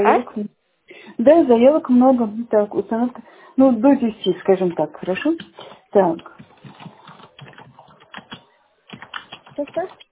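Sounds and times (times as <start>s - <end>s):
speech: 0.0s - 0.6s, 1.2s - 6.4s, 9.6s - 10.0s
computer keyboard typing while writing up a request: 5.0s - 10.1s.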